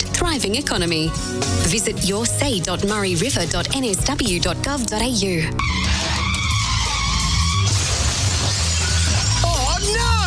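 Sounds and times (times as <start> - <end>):
speech: 0.3 - 5.9
squealing and scraping noises: 5.6 - 9.5
vehicle glass shattering: 7.4 - 10.0.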